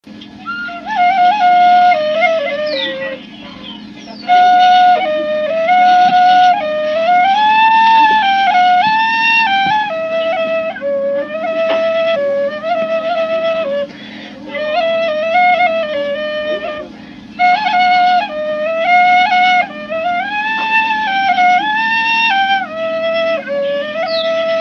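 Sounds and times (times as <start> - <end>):
Tucumán flute playing: 0.0 - 24.5.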